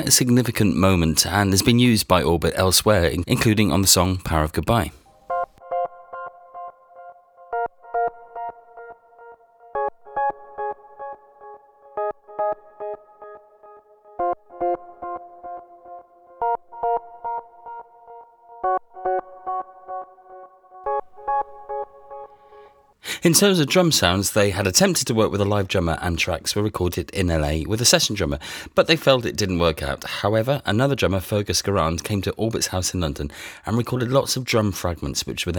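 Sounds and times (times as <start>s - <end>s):
speech: 0.0s - 5.0s, 23.3s - 35.5s
Roland Juno synthesizer keyboard part: 5.0s - 22.7s.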